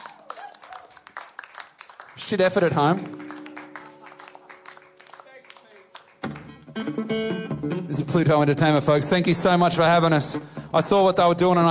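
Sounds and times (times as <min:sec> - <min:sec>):
audience applause: 0:00.0 - 0:06.7
speech: 0:02.2 - 0:03.2, 0:06.8 - 0:11.6.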